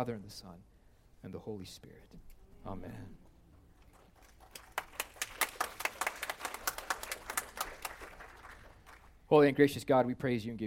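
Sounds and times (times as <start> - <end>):
speech: 0.0 - 3.2, 9.3 - 10.6
audience applause: 3.8 - 9.2.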